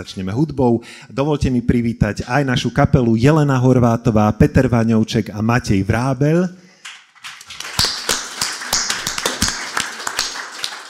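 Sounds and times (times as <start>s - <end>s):
speech: 0.0s - 6.6s
audience applause: 7.2s - 10.8s.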